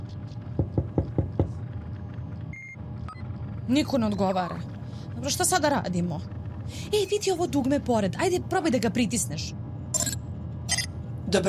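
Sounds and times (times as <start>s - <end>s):
low hum: 0.0s - 11.4s
knocking on a door: 0.6s - 1.5s
speech: 3.7s - 9.6s.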